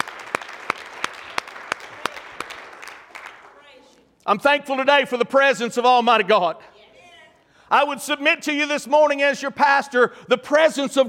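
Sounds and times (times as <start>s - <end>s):
church audience hand clapping: 0.0s - 3.8s
speech: 4.3s - 6.7s, 7.7s - 11.0s.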